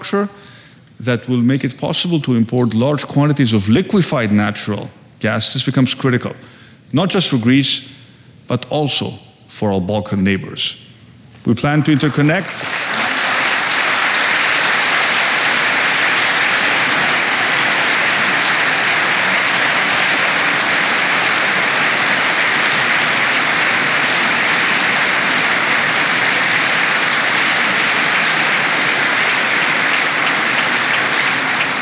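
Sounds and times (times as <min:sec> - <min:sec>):
speech: 0:00.0 - 0:12.9
audience applause: 0:11.8 - 0:31.8.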